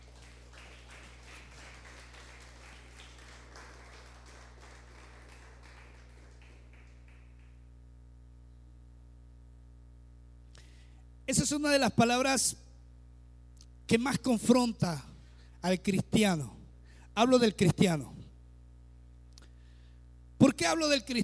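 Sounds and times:
audience applause: 0.0 - 7.6
speech: 11.3 - 12.6, 13.9 - 16.6, 17.2 - 18.2, 20.5 - 21.2.

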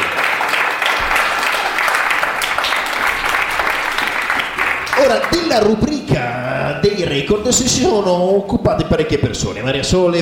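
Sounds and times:
studio audience applause: 0.0 - 5.8
speech: 5.0 - 10.2.

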